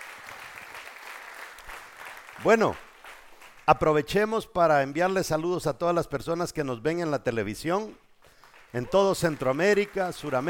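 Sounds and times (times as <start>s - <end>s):
audience applause: 0.0s - 3.6s, 8.4s - 10.4s
speech: 2.4s - 2.8s, 3.7s - 8.0s, 8.7s - 10.4s.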